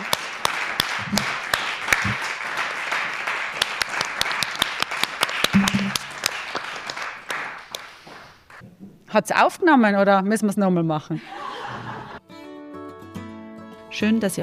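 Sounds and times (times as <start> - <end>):
audience applause: 0.0 - 8.6
speech: 9.2 - 11.4, 14.0 - 14.4
laughter: 11.2 - 12.2.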